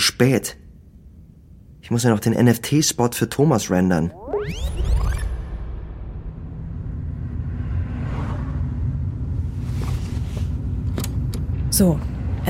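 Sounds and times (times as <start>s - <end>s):
speech: 0.0s - 0.6s, 1.9s - 4.9s, 11.8s - 12.4s
car engine rumble heard from inside: 6.2s - 12.4s
road noise: 6.3s - 12.4s.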